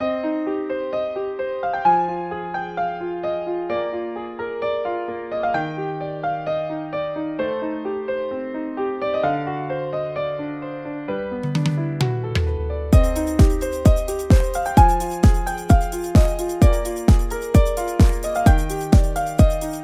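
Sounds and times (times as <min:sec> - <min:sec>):
piano ballad: 0:00.0 - 0:19.8.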